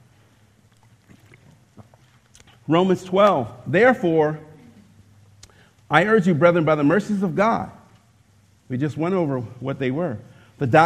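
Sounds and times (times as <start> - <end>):
person taking a swig of water: 0.2 - 2.7
speech: 2.7 - 4.5, 5.9 - 7.8, 8.7 - 10.8.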